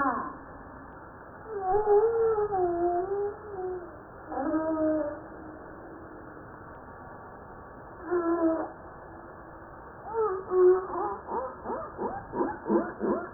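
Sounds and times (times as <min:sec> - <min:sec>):
humpback whale song: 0:01.5 - 0:05.9, 0:10.0 - 0:13.3.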